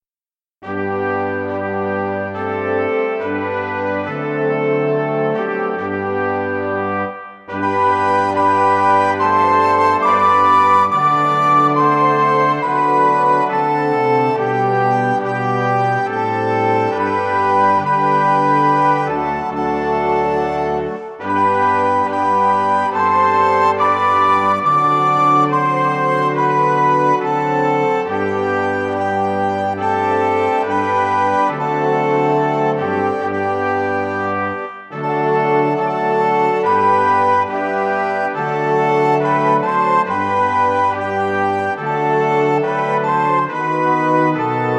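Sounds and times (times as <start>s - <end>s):
classical melody: 0.6s - 44.7s.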